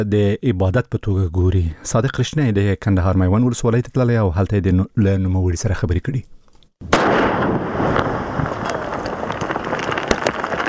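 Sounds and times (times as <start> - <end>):
speech: 0.0 - 7.6
landmine explosion set off by a police officer in Maiwand district, Kandahar: 6.8 - 10.6
sharp cracks: 6.8 - 10.6.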